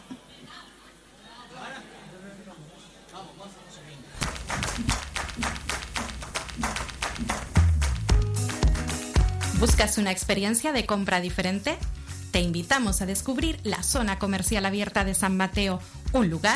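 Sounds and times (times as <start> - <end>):
applause: 4.2 - 9.8
speech: 9.6 - 16.5.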